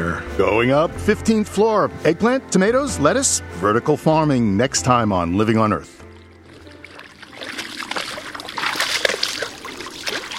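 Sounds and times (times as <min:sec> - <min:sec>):
speech: 0:00.4 - 0:06.0
moose wading through a pond: 0:06.0 - 0:10.3.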